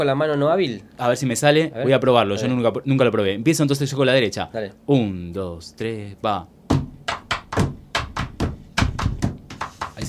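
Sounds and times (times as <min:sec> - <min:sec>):
speech: 0:00.0 - 0:06.6
pencil tapping on tabletop: 0:06.7 - 0:10.0.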